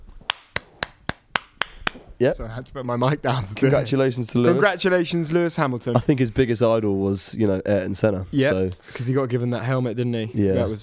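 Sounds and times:
hand claps: 0.2 - 2.1
speech: 2.2 - 10.8.

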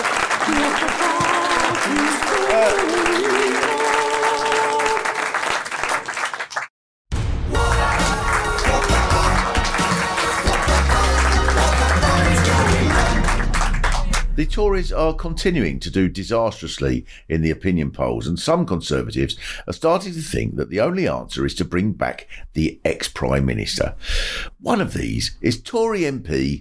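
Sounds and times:
crowd applauding: 0.0 - 6.7, 7.6 - 14.4
speech: 2.6 - 3.3, 14.6 - 26.6.

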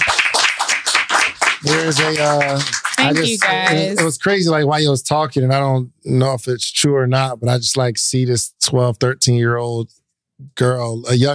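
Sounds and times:
audience applause: 0.0 - 4.2
speech: 1.6 - 11.3.

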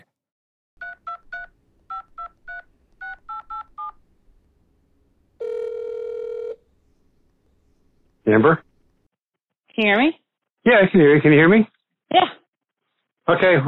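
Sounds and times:
touch-tone beeps dialing a phone number: 0.8 - 4.0
speech: 8.3 - 8.6, 9.8 - 12.3, 13.3 - 13.6.

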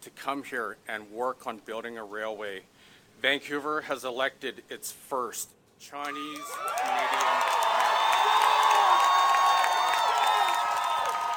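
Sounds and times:
speech: 0.0 - 7.6
scattered clapping: 6.0 - 11.3
large crowd cheering at an election victory celebration: 6.1 - 11.3
whoops and shouts: 6.1 - 11.3.

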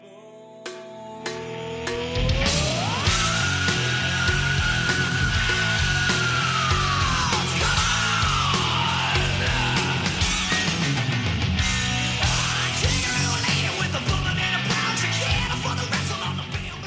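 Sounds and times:
hard rock song: 0.6 - 16.8
long high rising vocal scream: 2.2 - 10.8.

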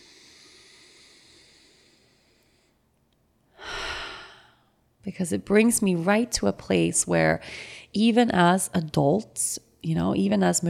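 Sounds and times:
deep breath: 0.0 - 2.9, 3.5 - 4.8, 7.4 - 7.9
speech: 5.0 - 10.6.

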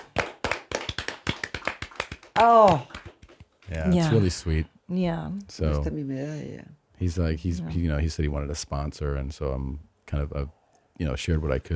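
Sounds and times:
hand clapping: 0.0 - 3.9
speech: 2.4 - 2.9, 3.7 - 11.7.

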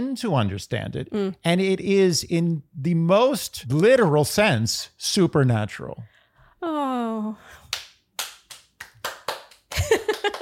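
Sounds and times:
speech: 0.0 - 7.6
slow handclaps: 7.6 - 10.4
flurry of claps: 7.7 - 10.4.

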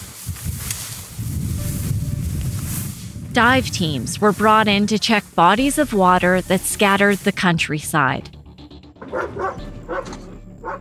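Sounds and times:
low rumble: 0.3 - 9.0
speech: 3.4 - 8.4
police dog barking: 9.0 - 10.7.

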